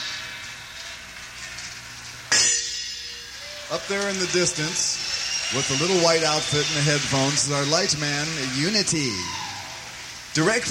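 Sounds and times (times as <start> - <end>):
small gong: 2.3 - 4.0
speech: 3.7 - 9.4, 10.4 - 10.6.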